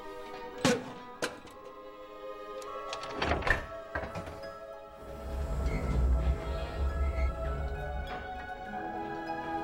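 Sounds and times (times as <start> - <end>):
door creaking in an animated Ice Age film: 0.3 - 1.8, 2.6 - 9.5
low rumble: 5.0 - 8.9.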